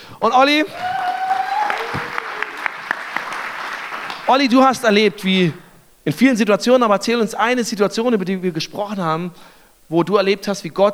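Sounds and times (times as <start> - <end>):
speech: 0.2 - 0.9, 4.3 - 10.9
audience applause welcoming speaker on stage: 0.7 - 4.5.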